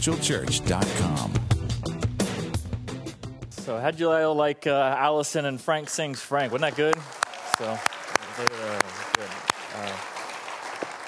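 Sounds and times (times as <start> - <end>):
speech: 0.0 - 2.0, 3.7 - 8.8
church congregation applauding: 6.0 - 11.0.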